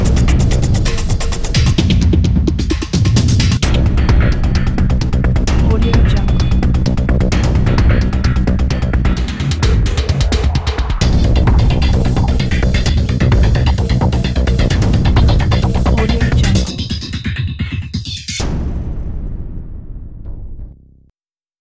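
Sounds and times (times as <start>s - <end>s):
energetic drums: 0.0s - 19.0s.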